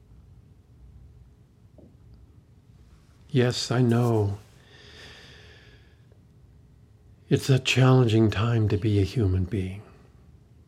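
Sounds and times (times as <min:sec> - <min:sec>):
speech: 0:03.3 - 0:04.4, 0:07.3 - 0:09.9
deep breath: 0:04.6 - 0:06.2.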